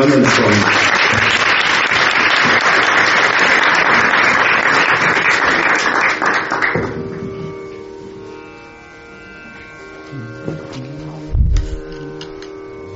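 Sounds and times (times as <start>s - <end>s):
audience applause: 0.0s - 7.0s
faint tonal hum: 7.0s - 12.9s.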